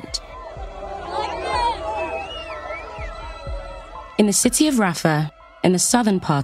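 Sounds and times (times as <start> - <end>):
high whistles: 0.0 - 4.2
crowd cheering in street: 0.0 - 6.4
speech: 4.2 - 6.4.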